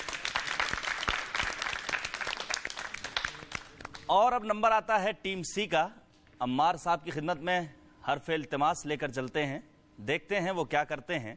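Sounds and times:
loud applause: 0:00.0 - 0:04.0
speech: 0:04.1 - 0:11.3.

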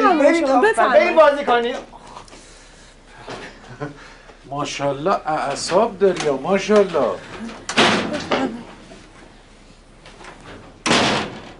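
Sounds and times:
speech: 0:00.3 - 0:02.0, 0:03.8 - 0:08.6
door rattling bangs: 0:05.5 - 0:08.6, 0:10.1 - 0:11.5
door shutting with a heavy thump: 0:10.8 - 0:11.5.

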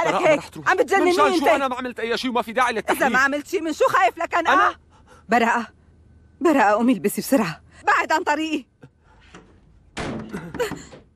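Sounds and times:
speech: 0:00.1 - 0:05.8, 0:06.4 - 0:08.7, 0:10.4 - 0:11.0
door slammed shut in a heated domestic quarrel: 0:09.4 - 0:11.1.

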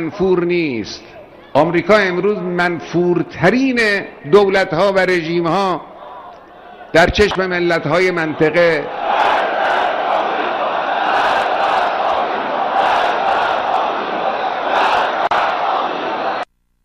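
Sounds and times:
speech: 0:00.0 - 0:05.9, 0:06.9 - 0:09.0
huge crowd roaring at Ayatollah Khamenei's speech in Gilan-e-Gharb, Kermanshah province, Iran: 0:05.9 - 0:16.4.

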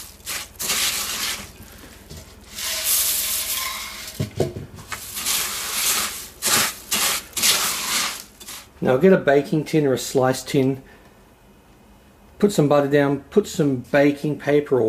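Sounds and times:
stirring rice bubbles into a sticky mixture: 0:00.0 - 0:04.1, 0:04.9 - 0:08.8
speech: 0:08.8 - 0:10.9, 0:12.4 - 0:14.8.

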